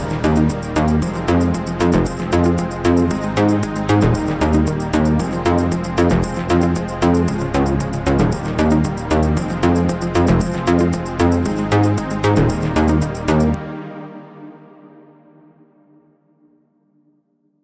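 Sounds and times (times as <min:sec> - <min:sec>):
dance music: 0:00.0 - 0:13.8.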